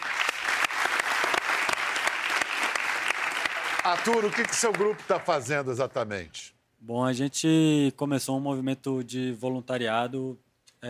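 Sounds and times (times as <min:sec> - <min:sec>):
audience applause: 0:00.0 - 0:05.7
speech: 0:03.8 - 0:10.8.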